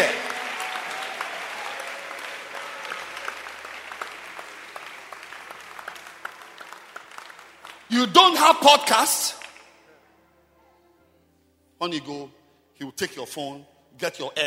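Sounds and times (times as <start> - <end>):
church congregation clapping: 0.0 - 9.8
speech: 7.9 - 9.4, 11.8 - 14.4.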